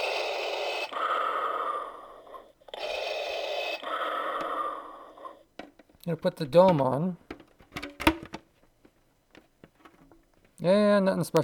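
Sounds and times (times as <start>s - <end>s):
simulated normal breathing noise from device: 0.0s - 5.6s
speech: 6.0s - 7.2s, 10.6s - 11.4s.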